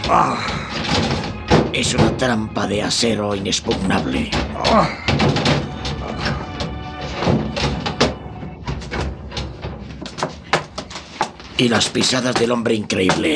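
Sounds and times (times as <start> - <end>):
fist pounding on steel door: 0.0 - 2.4, 3.7 - 10.9
speech: 0.1 - 0.6, 1.8 - 6.2, 11.6 - 13.3.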